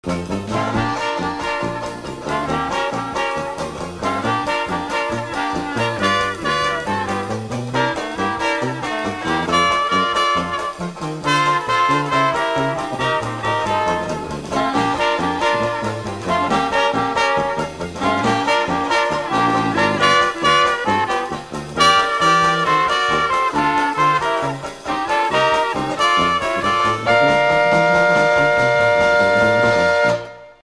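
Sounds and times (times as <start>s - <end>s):
swing music: 0.0s - 30.6s.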